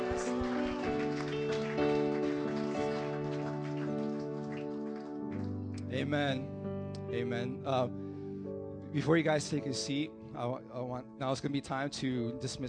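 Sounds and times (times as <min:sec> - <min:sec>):
audience clapping in praise: 0:00.0 - 0:06.0
speech: 0:06.0 - 0:08.0, 0:08.9 - 0:12.6.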